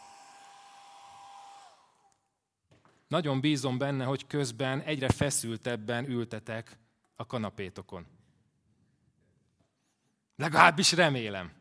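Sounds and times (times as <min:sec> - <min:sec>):
hair dryer running near a bowl of water: 0:00.0 - 0:02.1
speech: 0:03.1 - 0:08.2, 0:10.4 - 0:11.5.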